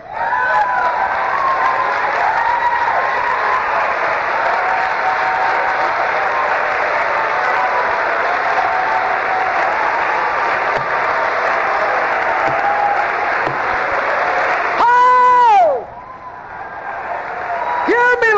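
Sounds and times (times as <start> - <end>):
audience clapping: 0.3 - 15.2, 17.0 - 18.2.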